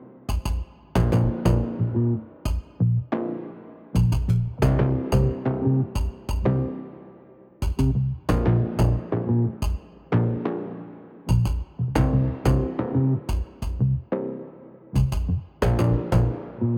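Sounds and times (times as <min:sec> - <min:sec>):
bass: 0:01.0 - 0:03.2, 0:04.0 - 0:06.9, 0:07.6 - 0:10.5, 0:11.3 - 0:14.2, 0:15.0 - 0:16.7.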